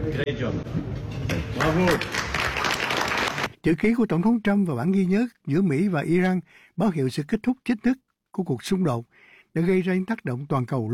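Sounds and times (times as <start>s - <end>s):
speech: 0.1s - 2.4s, 3.6s - 10.9s
applause after a signing ceremony: 1.6s - 3.5s.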